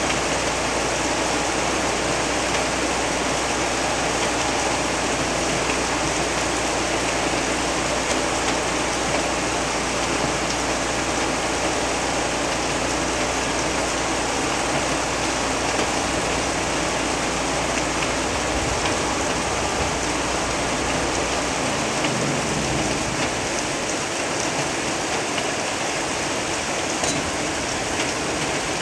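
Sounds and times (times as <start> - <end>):
rain: 0.0 - 28.8.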